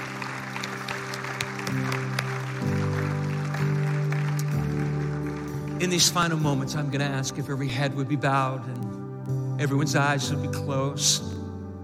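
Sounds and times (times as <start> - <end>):
audience clapping loudly: 0.0 - 6.5
speech: 5.8 - 9.0, 9.6 - 11.4.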